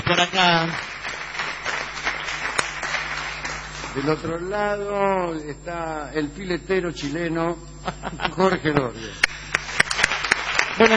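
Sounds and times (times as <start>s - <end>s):
audience ovation applause: 0.0s - 4.4s, 9.2s - 10.9s
sharp clap: 0.0s - 4.4s, 9.2s - 10.9s
speech: 0.1s - 0.9s, 3.9s - 9.3s, 10.8s - 10.9s
laughter: 7.8s - 9.3s, 10.8s - 10.9s.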